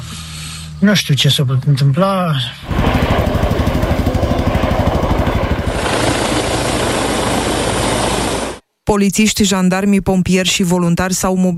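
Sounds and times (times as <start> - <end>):
speech: 0.8 - 3.4, 8.9 - 11.5
loud helicopter rotor and engine: 2.6 - 8.6.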